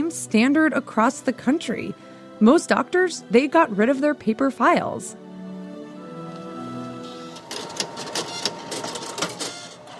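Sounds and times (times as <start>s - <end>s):
speech: 0.1s - 5.2s
fax machine whirring: 6.4s - 9.9s
fax machine clicks and buzzing bursts as it feeds the page: 6.9s - 9.9s.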